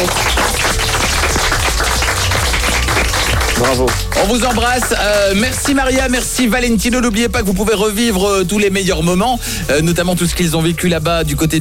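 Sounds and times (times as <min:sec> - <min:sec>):
audience applause: 0:00.0 - 0:06.2
speech: 0:03.7 - 0:11.5.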